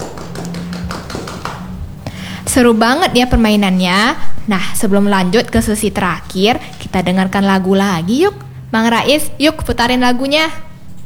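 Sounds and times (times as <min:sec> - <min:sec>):
hand clapping applause: 0:00.0 - 0:02.6
speech: 0:02.5 - 0:10.7.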